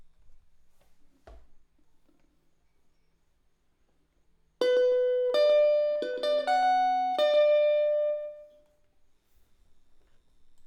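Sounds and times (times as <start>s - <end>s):
electric guitar: 4.6s - 8.5s.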